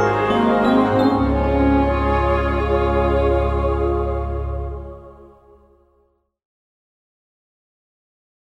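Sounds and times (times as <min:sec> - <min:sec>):
instrumental music: 0:00.0 - 0:06.2.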